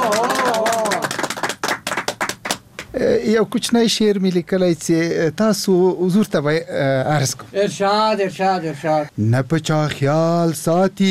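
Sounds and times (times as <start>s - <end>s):
audience clapping at a Pashto poetry gathering: 0.0s - 2.9s
speech: 3.0s - 11.0s.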